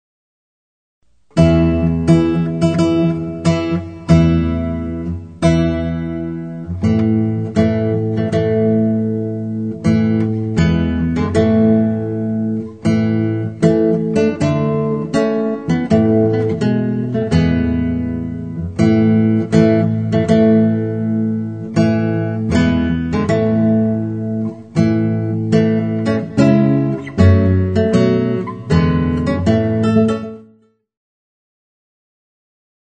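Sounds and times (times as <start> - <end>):
music piece: 1.3 - 30.7.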